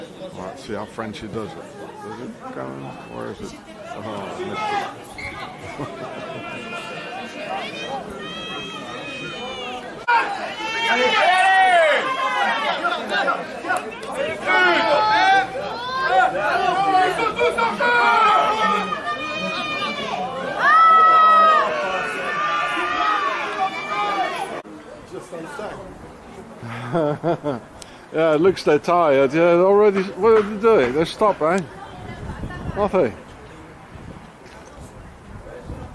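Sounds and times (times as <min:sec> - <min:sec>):
large crowd chatter at a rugby match: 0:00.0 - 0:35.9
speech: 0:00.3 - 0:09.6, 0:10.2 - 0:11.4, 0:12.0 - 0:18.9, 0:26.7 - 0:31.8, 0:32.8 - 0:33.2
higher shouts from a rugby crowd: 0:02.8 - 0:24.6
laughter: 0:04.2 - 0:07.7, 0:26.6 - 0:27.9.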